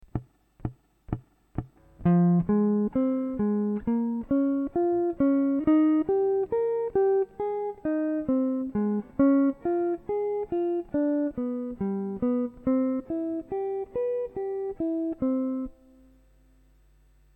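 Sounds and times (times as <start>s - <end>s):
triad chords: 0.0s - 17.3s.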